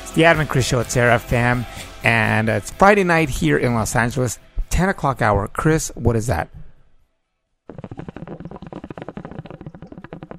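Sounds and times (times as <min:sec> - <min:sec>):
speech: 0:00.2 - 0:06.6
hookah water pipe bubbling: 0:07.7 - 0:10.3.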